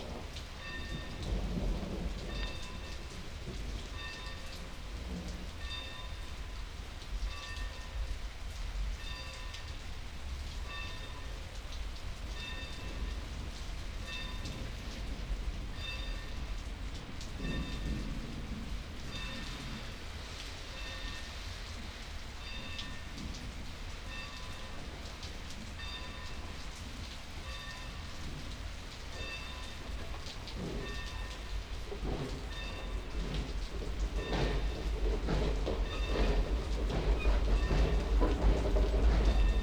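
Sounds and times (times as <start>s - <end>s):
thunder: 0.0s - 5.6s, 12.7s - 20.0s, 27.9s - 39.6s
steam railroad train: 0.0s - 39.6s.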